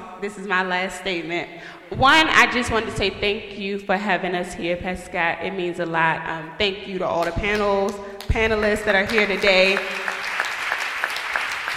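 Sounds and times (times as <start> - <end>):
speech: 0.2 - 10.1
audience clapping: 8.2 - 11.7.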